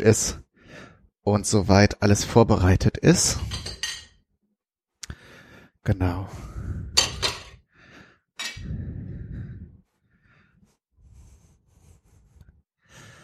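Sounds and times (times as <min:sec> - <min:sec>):
speech: 0:00.0 - 0:00.4, 0:01.3 - 0:03.8, 0:05.8 - 0:06.8
plate and spice containers set out on a kitchen counter: 0:03.4 - 0:04.2, 0:07.0 - 0:07.6.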